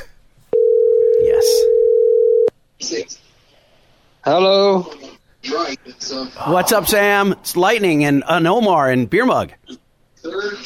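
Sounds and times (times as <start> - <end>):
telephone dial tone: 0.6 - 2.5
speech: 4.2 - 5.0, 6.1 - 9.6.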